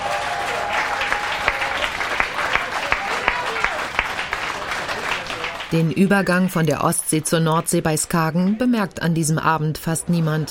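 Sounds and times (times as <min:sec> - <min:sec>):
audience applause: 0:00.0 - 0:06.5
speech: 0:05.7 - 0:10.5.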